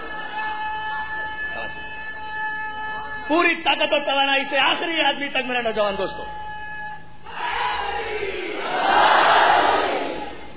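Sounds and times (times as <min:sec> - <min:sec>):
speech: 0:03.3 - 0:06.4
large crowd loudly chanting a blessing in unison: 0:07.3 - 0:10.5.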